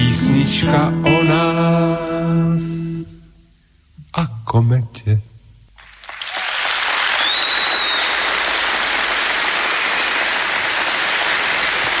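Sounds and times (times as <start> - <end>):
speech: 0.4 - 2.6, 4.2 - 5.3
audience applause after a song: 5.8 - 11.9
faint whistle: 7.2 - 8.2.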